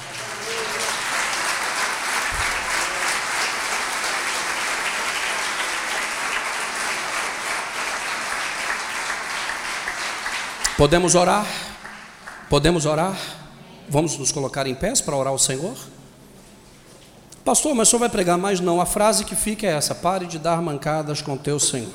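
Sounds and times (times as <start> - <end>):
audience applauding: 0.0 - 12.6
speech: 10.8 - 11.7, 12.5 - 16.0, 17.5 - 21.9.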